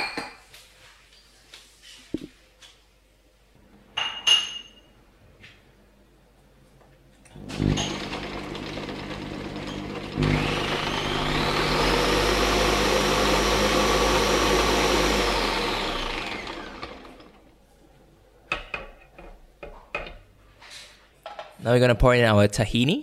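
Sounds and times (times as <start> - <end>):
blender motor whirring while blending hummus: 7.4 - 17.5
speech: 21.7 - 23.0.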